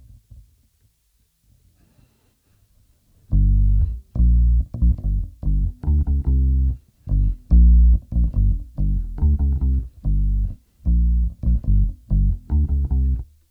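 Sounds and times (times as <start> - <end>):
bass: 3.3 - 13.4.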